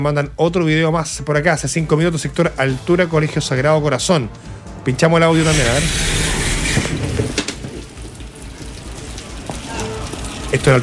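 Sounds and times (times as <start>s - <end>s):
speech: 0.0s - 6.2s, 10.6s - 10.8s
intense rain in Alto Hospicio: 5.3s - 10.8s.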